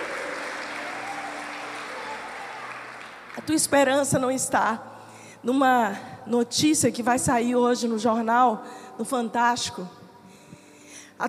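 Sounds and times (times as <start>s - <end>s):
audience applauding: 0.0s - 3.7s
speech: 3.4s - 10.0s.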